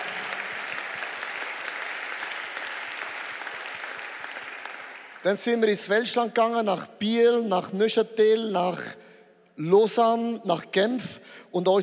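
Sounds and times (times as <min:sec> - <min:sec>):
audience applause: 0:00.0 - 0:05.4
speech: 0:05.2 - 0:11.8.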